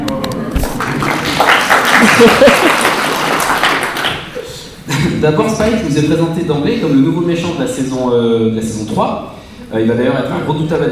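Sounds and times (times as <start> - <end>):
audience applauding: 0.0 - 4.6
laughter: 0.0 - 6.0
speech: 2.0 - 2.9, 5.2 - 10.8.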